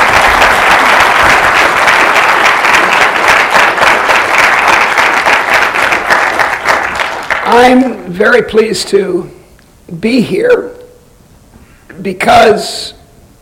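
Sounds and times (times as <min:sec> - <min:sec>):
audience applause welcoming a guest speaker at George Mason: 0:00.0 - 0:08.0
speech: 0:07.6 - 0:10.8, 0:12.0 - 0:13.0.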